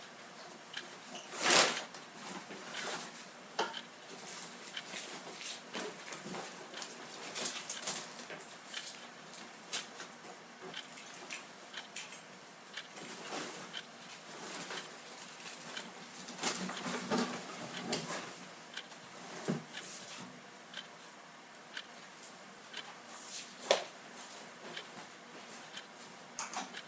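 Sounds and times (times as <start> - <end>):
clock ticking: 0.0 - 1.1, 2.7 - 3.0, 3.6 - 5.8, 6.4 - 10.1, 10.7 - 18.0, 18.7 - 19.9, 20.7 - 22.0, 22.7 - 23.0, 24.6 - 25.0, 25.6 - 26.8
person cleaning room: 0.0 - 26.8.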